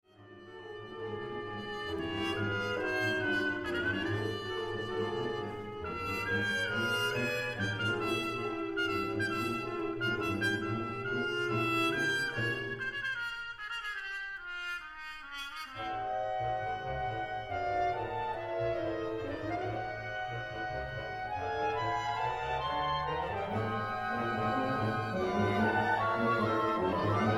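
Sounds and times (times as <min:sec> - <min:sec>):
trumpet concerto: 0:00.1 - 0:27.3.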